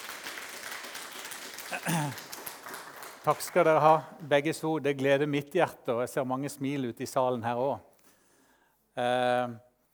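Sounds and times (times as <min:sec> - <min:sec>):
audience applause: 0:00.0 - 0:04.0
speech: 0:01.7 - 0:02.3, 0:03.2 - 0:07.9, 0:09.0 - 0:09.7.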